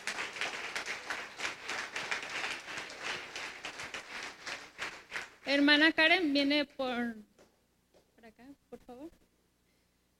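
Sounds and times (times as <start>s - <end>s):
crowd applauding: 0.0s - 5.4s
speech: 5.5s - 7.3s.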